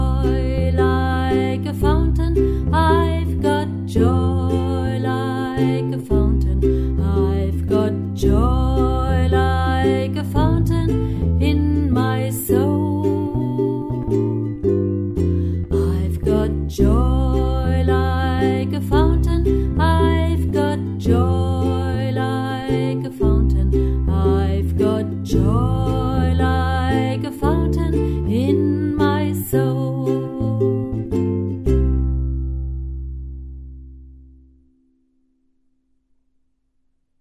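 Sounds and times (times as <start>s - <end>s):
spiritual song with ukulele bass: 0.0s - 34.9s.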